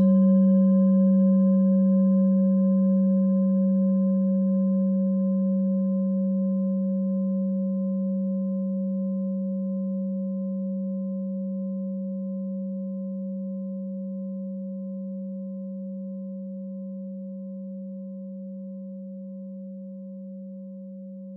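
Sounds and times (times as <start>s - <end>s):
Orissa singing bowl: 0.0s - 21.3s.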